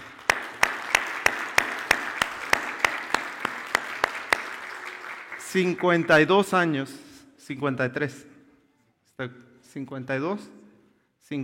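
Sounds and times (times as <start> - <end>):
audience rhythmic clapping in unison: 0.0 - 6.5
speech: 5.5 - 8.3, 9.2 - 10.6, 11.3 - 11.4.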